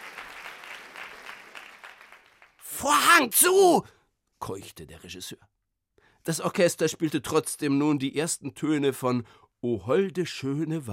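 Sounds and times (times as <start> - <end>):
audience clapping: 0.0 - 2.8
speech: 2.8 - 5.5, 6.3 - 10.9.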